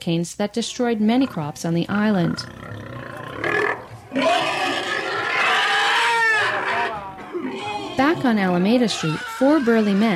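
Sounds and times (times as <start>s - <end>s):
speech: 0.0s - 2.7s, 8.1s - 10.1s
pig screaming: 2.2s - 10.1s.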